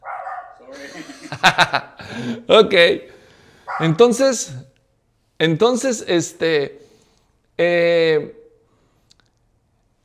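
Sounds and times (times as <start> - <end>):
dog barking: 0.0 - 0.6, 3.7 - 4.0
laughter: 0.7 - 2.5
speech: 0.7 - 3.1, 3.8 - 4.7, 5.4 - 6.8, 7.6 - 8.4.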